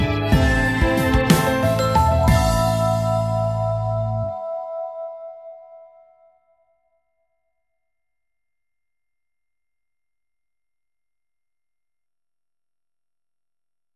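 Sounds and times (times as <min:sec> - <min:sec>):
instrumental music: 0:00.0 - 0:06.6.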